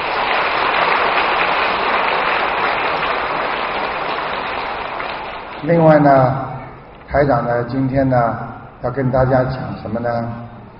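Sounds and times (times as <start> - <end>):
large audience applause: 0.0 - 6.0
speech: 5.6 - 6.4, 7.1 - 10.4.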